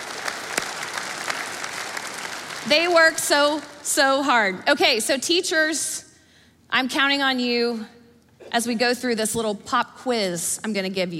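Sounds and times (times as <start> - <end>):
audience applause for teachers: 0.0 - 3.8
speech: 2.6 - 6.0, 6.7 - 11.1.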